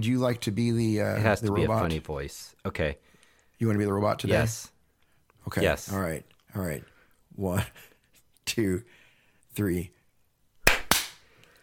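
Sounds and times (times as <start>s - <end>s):
speech: 0.0s - 4.8s, 5.4s - 7.9s, 8.5s - 9.0s, 9.6s - 10.0s
hand claps triggering a clap-activated device: 10.6s - 11.3s.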